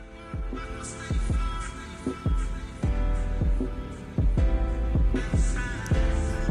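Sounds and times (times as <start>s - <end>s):
new hip-hop track played back: 0.0s - 6.4s.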